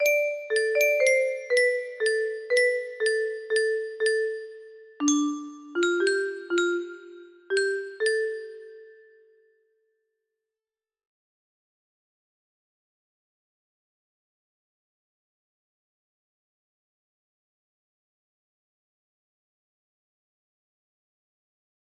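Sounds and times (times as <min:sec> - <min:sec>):
music box melody: 0:00.0 - 0:09.4.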